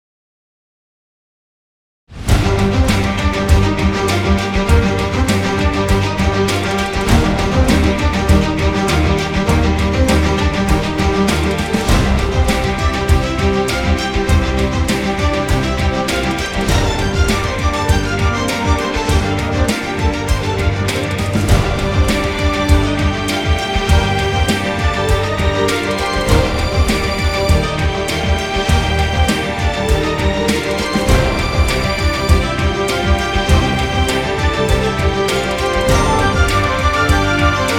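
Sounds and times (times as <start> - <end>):
news music mix without melody: 2.3 - 37.7.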